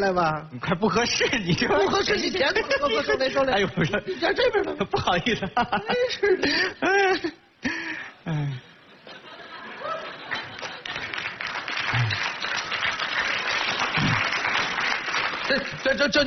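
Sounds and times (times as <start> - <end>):
speech: 0.0 - 7.4, 15.8 - 16.2
laughter: 1.3 - 7.4, 8.3 - 12.3, 15.4 - 16.1
audience applause: 9.5 - 16.2.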